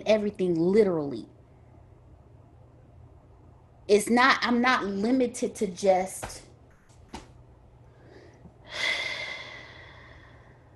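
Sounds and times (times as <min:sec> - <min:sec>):
speech: 0:00.0 - 0:01.3, 0:03.9 - 0:06.4
deep breath intake as a speaker pauses mid-talk: 0:08.0 - 0:10.7.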